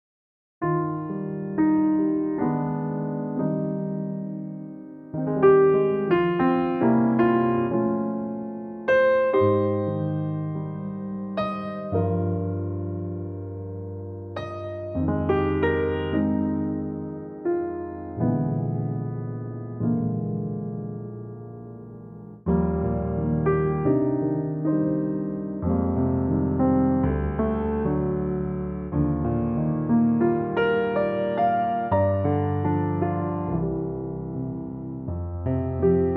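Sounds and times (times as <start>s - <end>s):
electric piano: 0.6s - 36.1s.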